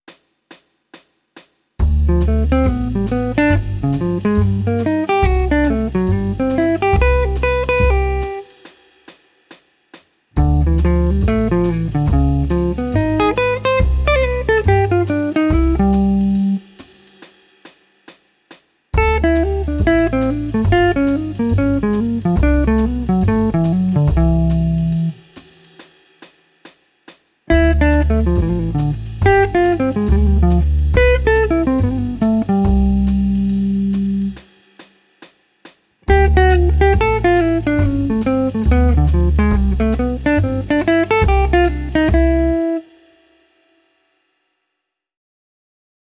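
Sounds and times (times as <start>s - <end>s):
jazz guitar: 1.8s - 8.6s, 10.4s - 16.7s, 19.0s - 25.2s, 27.5s - 34.5s, 36.0s - 43.0s.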